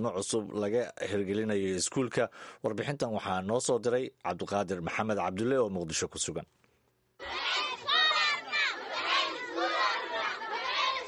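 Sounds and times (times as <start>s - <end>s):
speech: 0.0s - 6.6s
poor children shouting in protest at their school in Waaberi district Mogadishu: 7.2s - 11.0s.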